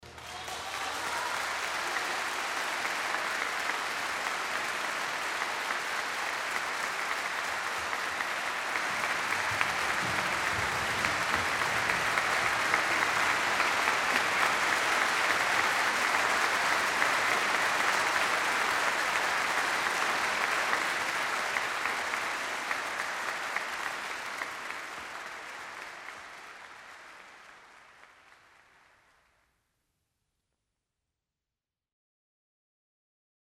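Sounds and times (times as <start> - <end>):
applause: 0.0 - 29.6.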